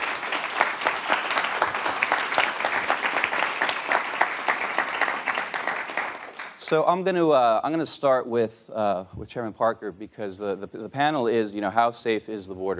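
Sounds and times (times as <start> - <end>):
audience applause: 0.0 - 6.8
speech: 6.7 - 12.7.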